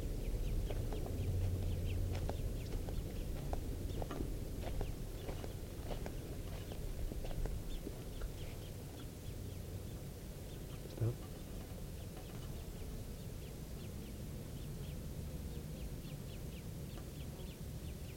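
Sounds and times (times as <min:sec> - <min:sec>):
two birds calling, parent and young: 0:00.0 - 0:18.1.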